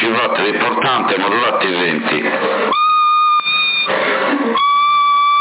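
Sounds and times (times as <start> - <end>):
speech: 0.1 - 2.8
person whistling a steady note into a CB radio microphone in Sassari: 2.7 - 3.9, 4.5 - 5.3.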